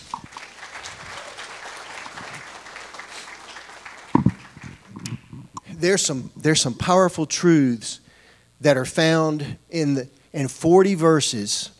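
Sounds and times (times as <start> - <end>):
audience hand clapping: 0.0 - 5.6
speech: 5.8 - 8.0, 8.6 - 11.7.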